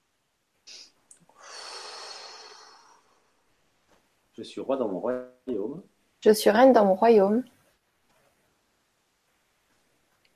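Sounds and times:
person sniffing: 0:00.7 - 0:03.0
deep breath: 0:00.7 - 0:03.5
speech: 0:04.4 - 0:07.5.

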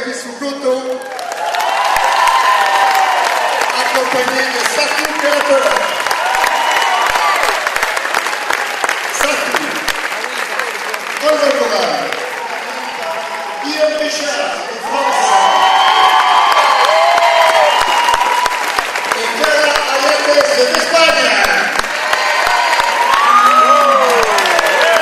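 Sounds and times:
speech: 0:00.1 - 0:00.8
audience applause: 0:00.8 - 0:25.0.

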